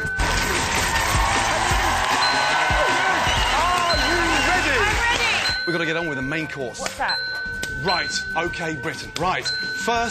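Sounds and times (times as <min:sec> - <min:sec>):
hand clapping: 0:00.6 - 0:05.7
speech: 0:05.7 - 0:10.0.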